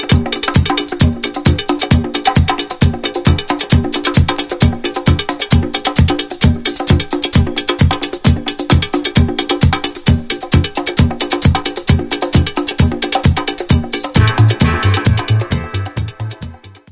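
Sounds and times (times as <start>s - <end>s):
drum band playing: 0.0s - 16.9s.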